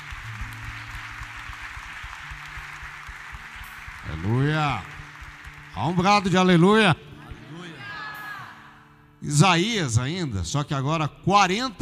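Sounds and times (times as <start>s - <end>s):
audience applause: 0.0s - 6.5s
speech: 4.1s - 5.0s, 5.8s - 7.0s, 9.2s - 11.8s.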